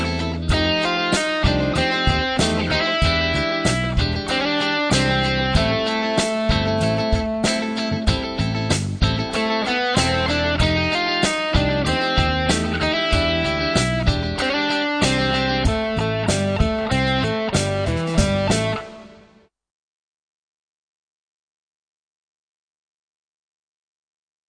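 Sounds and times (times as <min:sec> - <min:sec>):
rock and blues solos: 0:00.0 - 0:19.4.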